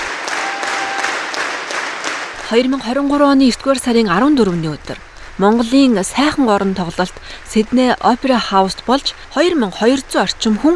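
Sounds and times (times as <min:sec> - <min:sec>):
large audience at the Sydney Opera House applauding a Mongolian morin khuur ensemble: 0:00.0 - 0:03.2
speech: 0:02.5 - 0:10.7.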